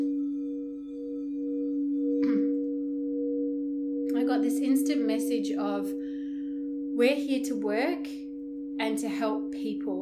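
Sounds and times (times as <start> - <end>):
selenite crystal singing bowl ringing: 0.0 - 10.0
speech: 4.3 - 6.0, 7.0 - 8.2, 8.8 - 10.0.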